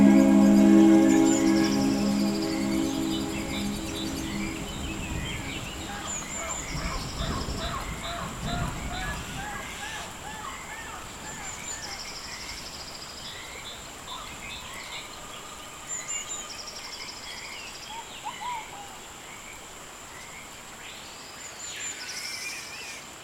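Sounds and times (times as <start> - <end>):
birds chirping and trilling: 0.0 - 9.3
thunder rumbling: 0.0 - 9.8
low hooting calls: 0.0 - 11.0.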